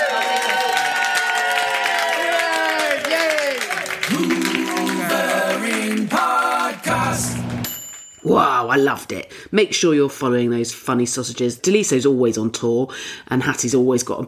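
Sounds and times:
live audience applause: 0:00.0 - 0:07.6
speech: 0:08.3 - 0:14.2.

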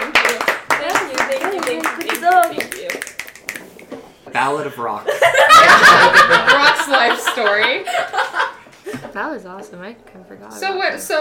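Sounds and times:
round of clapping: 0:00.0 - 0:03.8
speech: 0:04.4 - 0:08.5, 0:09.2 - 0:11.1
laughter: 0:05.1 - 0:09.0.

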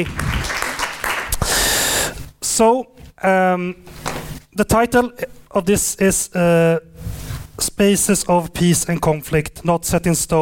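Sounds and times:
speech: 0:00.0 - 0:00.3, 0:02.6 - 0:10.4
audience applause: 0:00.0 - 0:01.6.

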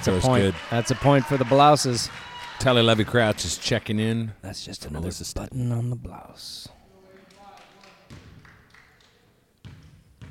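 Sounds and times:
speech: 0:00.0 - 0:06.8
basketball bouncing during a basketball game: 0:09.6 - 0:10.2.

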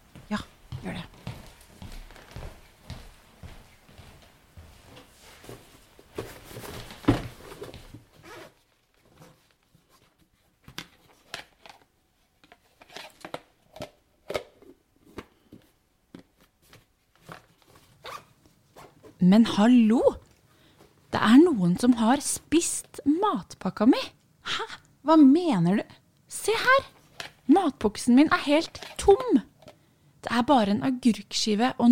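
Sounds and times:
footsteps crossing to a wardrobe: 0:00.1 - 0:08.1
rummaging and handling noises fetching a backpack: 0:04.9 - 0:18.2
speech: 0:19.2 - 0:20.2, 0:21.3 - 0:24.2, 0:25.0 - 0:25.9, 0:26.5 - 0:26.9, 0:27.6 - 0:29.5, 0:30.4 - 0:31.9.

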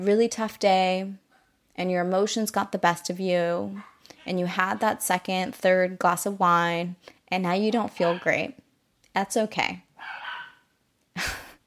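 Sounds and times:
speech: 0:00.0 - 0:01.2, 0:01.8 - 0:08.6, 0:09.2 - 0:10.2
dog barking in the background: 0:03.7 - 0:05.0, 0:08.0 - 0:08.4, 0:10.0 - 0:10.7.

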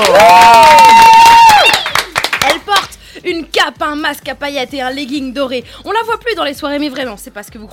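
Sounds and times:
speech: 0:00.0 - 0:00.4, 0:03.6 - 0:07.7
crowd whooping and cheering: 0:00.0 - 0:02.1
crowd clapping: 0:00.0 - 0:02.9.

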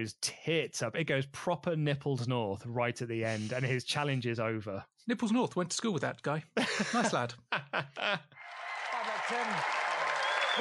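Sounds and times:
speech: 0:00.0 - 0:08.4, 0:09.3 - 0:09.8
laughter: 0:06.6 - 0:08.5
audience applause: 0:08.4 - 0:10.6.

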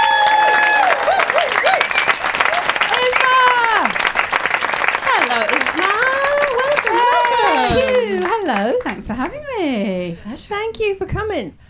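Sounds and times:
whoops: 0:00.0 - 0:02.8, 0:05.9 - 0:08.3
audience clapping to welcome a guest comedian: 0:00.0 - 0:09.4
speech: 0:09.0 - 0:11.6.

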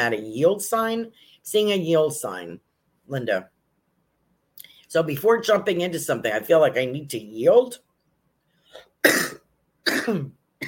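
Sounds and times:
speech: 0:00.0 - 0:03.5, 0:04.6 - 0:07.8, 0:08.7 - 0:09.3, 0:10.0 - 0:10.4
person coughing and clearing throat from dusty air: 0:08.8 - 0:10.6.

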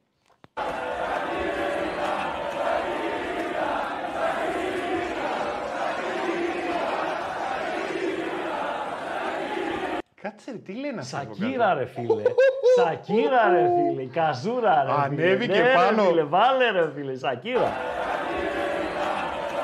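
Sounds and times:
crowd at a Kings League event booing and jeering Piqué: 0:00.6 - 0:10.0, 0:17.6 - 0:19.6
speech: 0:10.4 - 0:18.0
laughter: 0:12.0 - 0:14.0, 0:17.6 - 0:19.6.

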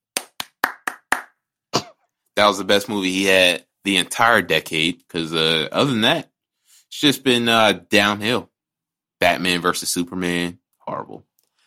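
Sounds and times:
hand clap sound effect: 0:00.1 - 0:01.4
speech: 0:02.4 - 0:06.3, 0:06.9 - 0:08.5, 0:09.2 - 0:11.3.

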